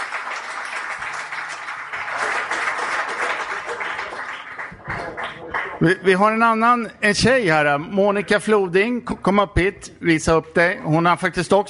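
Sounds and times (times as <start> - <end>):
audience applause: 0.0 - 6.0
speech: 5.8 - 11.6.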